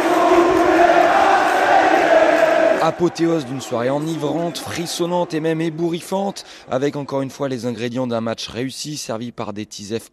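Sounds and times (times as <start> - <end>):
stadium crowd jeering at the final whistle: 0.0 - 7.3
speech: 2.8 - 10.1.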